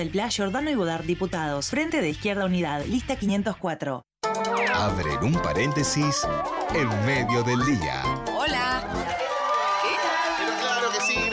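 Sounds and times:
speech: 0.0 - 9.0
crowd cheering and shouting: 4.6 - 11.3
recorded crowd applause: 6.4 - 11.3.

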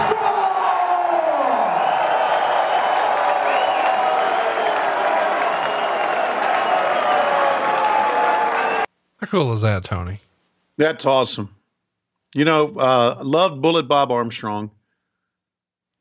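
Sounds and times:
audience applause and cheering: 0.0 - 9.7
speech: 9.3 - 11.6, 12.3 - 14.8.

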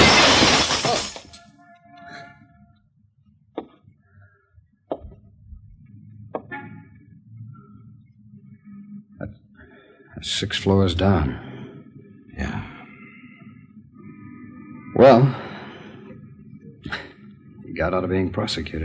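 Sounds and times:
window glass shattering: 0.0 - 1.4
speech: 10.2 - 11.4, 17.8 - 18.8.

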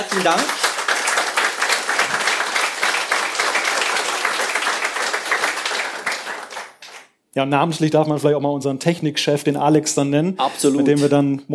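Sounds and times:
speech: 0.0 - 0.6, 7.4 - 11.5
audience applause: 0.0 - 7.1.

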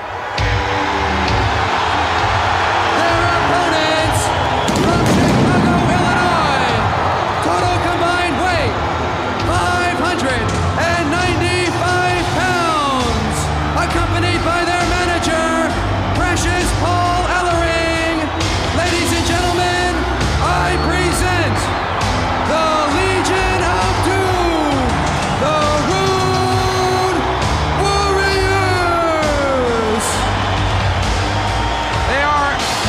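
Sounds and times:
arena crowd cheering the Road Warriors' entrance: 0.0 - 32.8.

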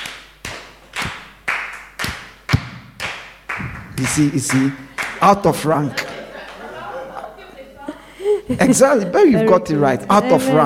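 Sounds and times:
group clapping in a beat: 0.0 - 7.4
speech: 4.0 - 6.0, 8.5 - 10.6
laughter: 4.0 - 10.6.

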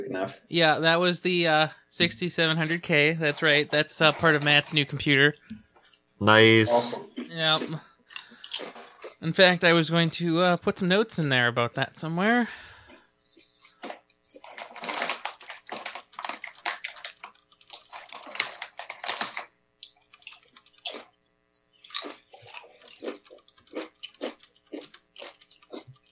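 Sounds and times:
speech: 0.1 - 5.6, 6.2 - 7.9, 8.6 - 12.7
person crunching potato chips: 7.6 - 9.2, 13.6 - 26.1.

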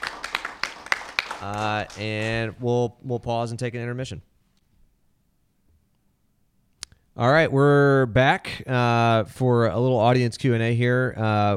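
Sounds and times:
audience applause: 0.0 - 2.4
speech: 1.4 - 4.3, 7.2 - 11.5.

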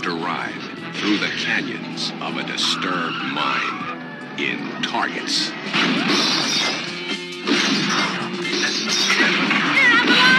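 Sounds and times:
speech: 0.1 - 6.8
gunfire from a trailer for the film Targets: 5.6 - 10.3.

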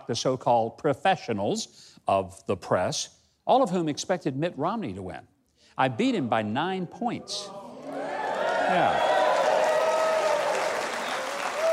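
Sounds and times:
speech: 0.1 - 7.6, 8.7 - 9.1
audience applause: 7.8 - 11.7.

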